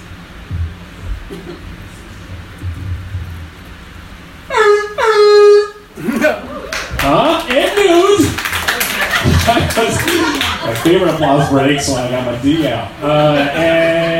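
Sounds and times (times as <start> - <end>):
low noisy rumble: 0.0 - 14.1
speech: 1.3 - 1.8, 10.8 - 14.1
voice imitating a foghorn: 4.5 - 6.4
laughter: 6.0 - 14.1.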